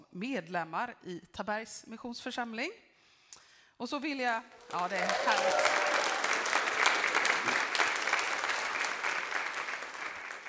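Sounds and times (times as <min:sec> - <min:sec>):
speech: 0:00.2 - 0:05.8
audience applause: 0:04.5 - 0:10.4.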